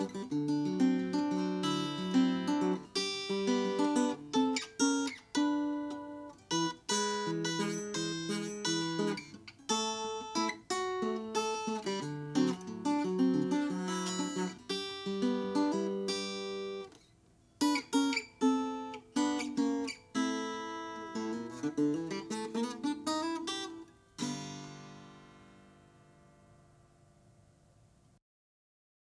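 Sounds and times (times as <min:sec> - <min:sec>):
1920 Oscar Schmidt Galiano natural guitar: 0:00.0 - 0:28.1.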